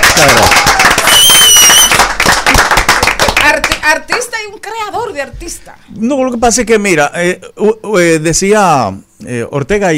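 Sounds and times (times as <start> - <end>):
loud audience applause: 0.0 - 3.8
speech: 0.2 - 0.7, 4.5 - 9.9.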